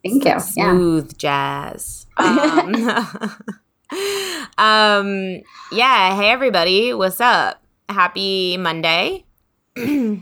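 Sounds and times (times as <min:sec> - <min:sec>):
steady vocal tone: 0:00.0 - 0:03.3
speech: 0:00.0 - 0:10.2
laughter: 0:00.2 - 0:04.5
person clearing throat: 0:09.8 - 0:10.2.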